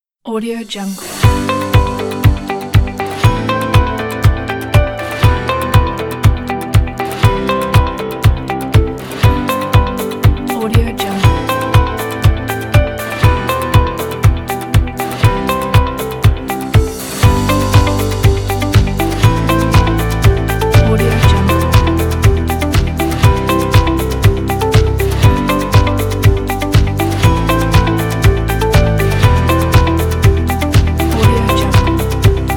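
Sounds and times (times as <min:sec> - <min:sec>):
upbeat corporate uplifting music: 0:01.0 - 0:32.5.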